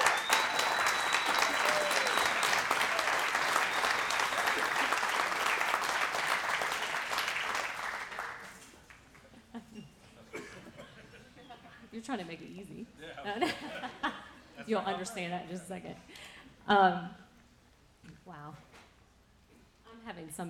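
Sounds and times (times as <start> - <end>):
church congregation applauding: 0.0 - 9.2
laughter: 9.3 - 11.9, 13.0 - 14.9
speech: 12.1 - 17.2, 20.2 - 20.4.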